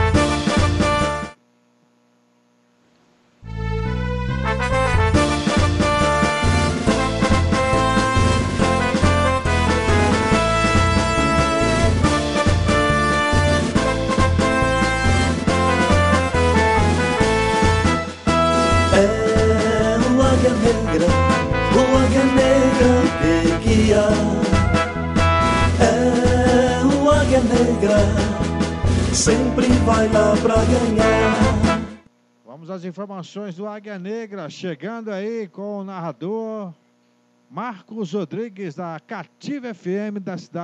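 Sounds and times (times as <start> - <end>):
football club anthem playing: 0.0 - 1.4, 3.6 - 32.0
speech: 32.8 - 36.8, 37.5 - 40.6.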